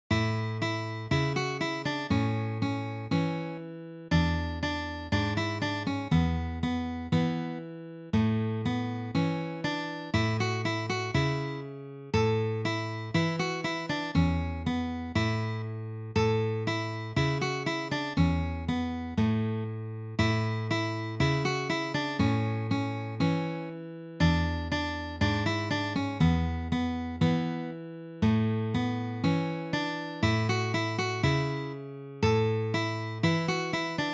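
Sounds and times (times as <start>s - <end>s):
guitar: 0.0s - 34.1s.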